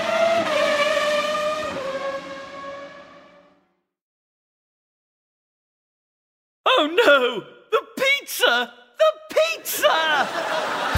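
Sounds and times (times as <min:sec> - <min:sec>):
racing car skidding: 0:00.0 - 0:03.6
racing car engine whine: 0:00.0 - 0:03.7
speech: 0:06.8 - 0:07.6, 0:08.3 - 0:10.9
laughter: 0:09.6 - 0:10.9.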